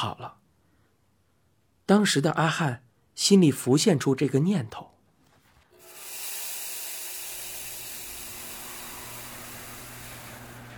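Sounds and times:
speech: 0.0s - 0.4s, 1.9s - 4.9s
chili peppers sizzling in a hot wok: 5.8s - 10.7s.

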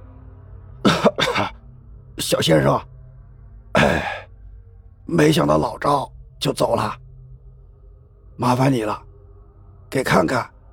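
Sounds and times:
person coughing: 0.8s - 1.6s, 3.8s - 4.3s
speech: 2.2s - 2.9s, 3.8s - 4.1s, 5.1s - 7.0s, 8.4s - 9.1s, 9.9s - 10.5s.

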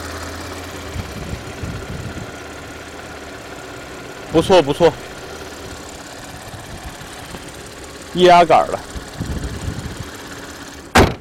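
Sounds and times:
car engine idling: 0.0s - 11.1s
speech: 4.3s - 5.1s, 8.2s - 8.9s.

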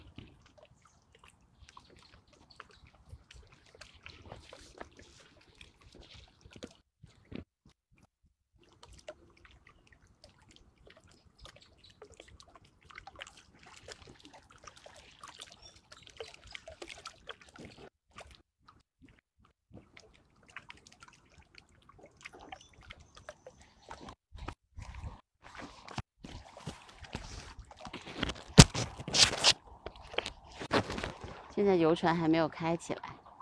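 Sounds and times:
Kunming Lake water lapping: 0.0s - 7.4s, 8.6s - 33.4s
speech: 31.6s - 33.0s.

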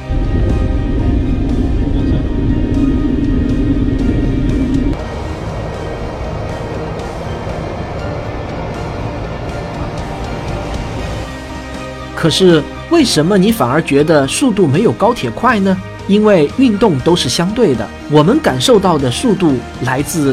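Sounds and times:
Boeing 737 cockpit in flight: 0.0s - 13.2s
speech: 12.2s - 20.3s.

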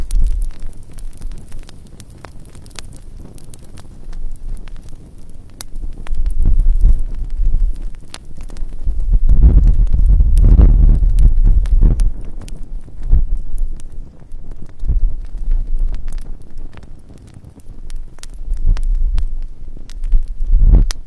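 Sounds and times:
low steady rumble: 0.0s - 0.7s, 5.8s - 16.7s, 17.8s - 21.0s
calm campfire at night crackling: 0.0s - 21.0s.

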